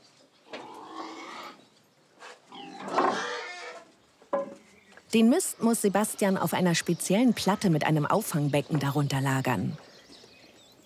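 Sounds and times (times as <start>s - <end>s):
pigs grunting and squealing on a farm: 0.5s - 1.6s, 2.5s - 3.9s
speech: 5.1s - 9.9s.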